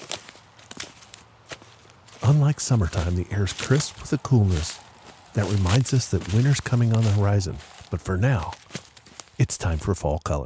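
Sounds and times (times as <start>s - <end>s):
footsteps crunching through dry fallen leaves: 0.0s - 10.0s
speech: 2.2s - 8.6s, 9.4s - 10.4s.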